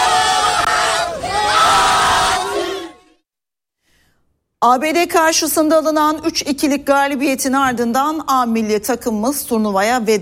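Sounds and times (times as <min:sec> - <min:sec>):
Turkish football fans cheering and chanting after a match win: 0:00.0 - 0:03.1
speech: 0:04.6 - 0:10.2.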